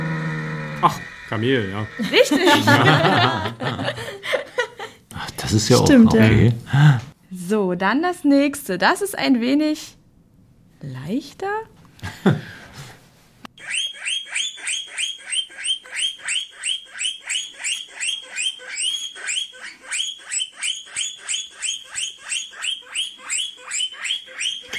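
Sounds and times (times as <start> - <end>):
speech: 0.8 - 4.1, 5.5 - 10.0, 10.8 - 12.6
laughter: 1.5 - 5.0
guinea pig squeaking: 13.6 - 24.7.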